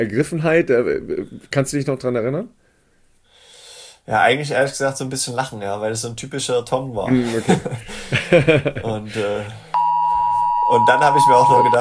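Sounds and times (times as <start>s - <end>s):
speech: 0.0s - 2.6s, 4.1s - 9.7s, 10.7s - 11.7s
laughter: 7.1s - 9.6s
phone alert tone for siren test: 9.8s - 11.7s.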